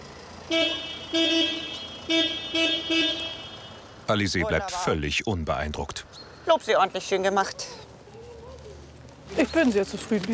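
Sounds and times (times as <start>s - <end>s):
low rumble of traffic: 0.0s - 10.3s
speech: 0.5s - 3.2s, 4.1s - 7.8s, 9.3s - 10.3s
car horn honking: 0.5s - 4.0s.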